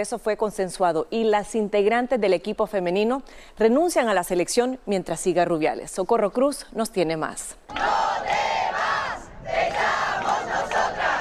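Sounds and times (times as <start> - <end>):
speech: 0.0 - 8.6
crowd of protesters shouting in front of the Real Federación de Fútbol: 7.7 - 11.1.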